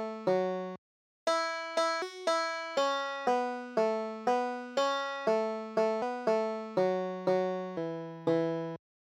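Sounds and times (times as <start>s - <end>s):
banjo tune: 1.3s - 8.8s.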